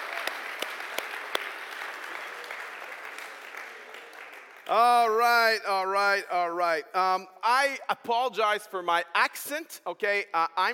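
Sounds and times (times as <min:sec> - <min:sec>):
audience clapping: 0:00.0 - 0:05.6
person speaking loudly: 0:04.7 - 0:10.7
speech: 0:04.7 - 0:10.7.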